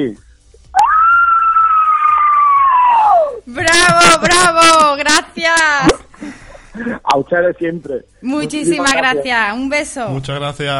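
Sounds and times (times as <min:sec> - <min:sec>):
speech: 0:00.0 - 0:00.2, 0:03.5 - 0:10.7
person imitating a zombie scream: 0:00.8 - 0:04.4.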